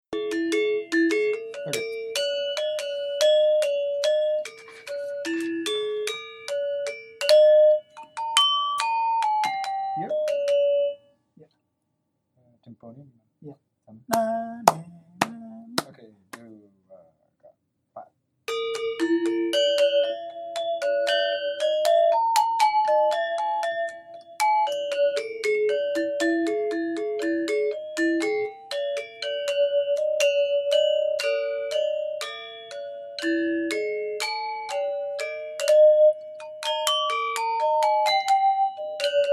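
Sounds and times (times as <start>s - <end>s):
gamelan: 0.1s - 11.0s, 18.5s - 39.3s.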